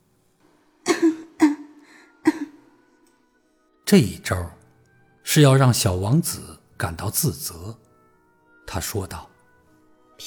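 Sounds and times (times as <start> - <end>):
coughing: 0.8 - 2.8
speech: 3.9 - 4.6, 5.3 - 7.8, 8.7 - 9.3.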